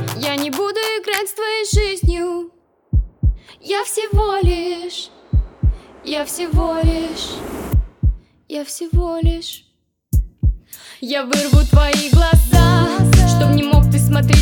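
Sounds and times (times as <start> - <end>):
heartbeat: 1.7 - 2.3, 2.9 - 3.5, 4.1 - 8.3, 9.0 - 9.5, 10.2 - 10.6, 11.6 - 14.4
speech: 3.7 - 5.1, 6.1 - 7.8, 8.5 - 9.7, 11.0 - 14.4.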